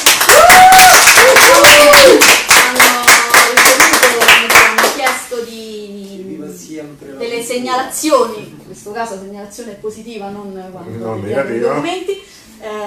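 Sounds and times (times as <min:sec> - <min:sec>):
audience applause: 0:00.0 - 0:05.1
speech: 0:07.6 - 0:12.8.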